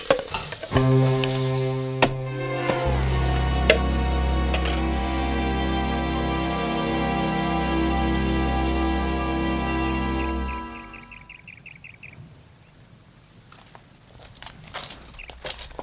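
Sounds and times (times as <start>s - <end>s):
fried eggs sizzling in a pan: 0.0s - 2.2s
low hum: 0.7s - 11.3s.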